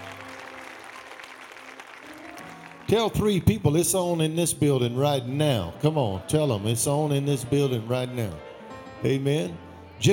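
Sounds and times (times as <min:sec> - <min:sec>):
crowd applause: 0:00.0 - 0:03.8
speech: 0:02.9 - 0:10.1.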